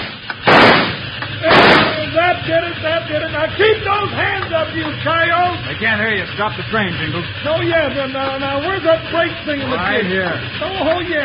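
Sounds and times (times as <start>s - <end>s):
gunshot: 0.0s - 2.1s
sharp pops: 0.0s - 2.2s
speech: 2.4s - 11.2s.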